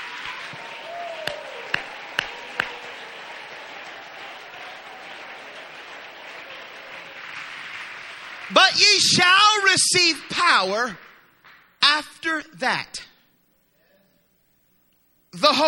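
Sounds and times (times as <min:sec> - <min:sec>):
audience clapping: 0:00.0 - 0:12.1
speech: 0:08.5 - 0:11.0, 0:12.0 - 0:13.1, 0:15.4 - 0:15.6.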